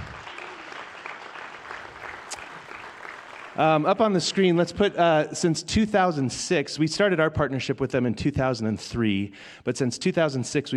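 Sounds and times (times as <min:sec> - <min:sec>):
audience applause: 0:00.0 - 0:04.6
speech: 0:03.6 - 0:10.7.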